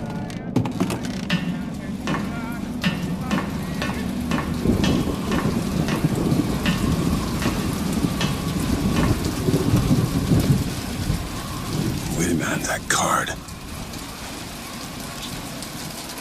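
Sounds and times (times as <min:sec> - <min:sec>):
rain at night: 0:01.0 - 0:16.2
speech: 0:12.7 - 0:13.4.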